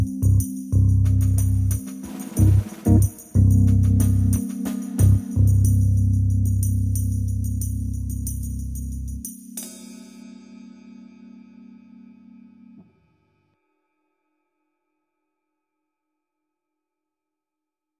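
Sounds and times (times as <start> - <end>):
ambience: 0.0 - 9.3.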